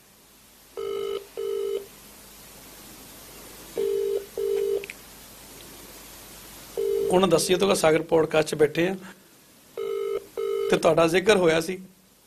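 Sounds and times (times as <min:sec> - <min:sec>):
faint hiss: 0:00.0 - 0:12.2
ringback of a phone call on hands-free: 0:00.8 - 0:01.9, 0:03.8 - 0:04.9, 0:06.8 - 0:07.2, 0:09.8 - 0:10.8
speech: 0:07.1 - 0:09.2, 0:10.7 - 0:11.9.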